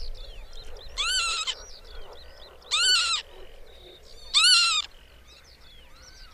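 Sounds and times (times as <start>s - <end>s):
northern lapwing wheezy call: 1.0s - 1.7s, 2.7s - 3.3s, 4.3s - 4.9s.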